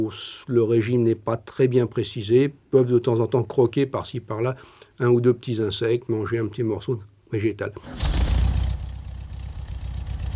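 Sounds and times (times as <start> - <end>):
speech: 0.0 - 8.2
car engine idling: 8.0 - 10.3.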